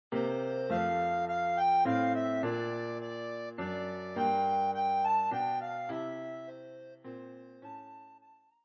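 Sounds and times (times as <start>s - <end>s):
soprano recorder playing a Christmas carol: 0.1s - 8.6s.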